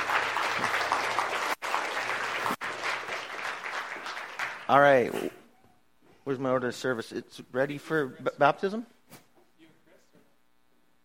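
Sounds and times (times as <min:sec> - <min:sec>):
audience applause: 0:00.0 - 0:04.9
speech: 0:04.7 - 0:05.4, 0:06.3 - 0:09.0.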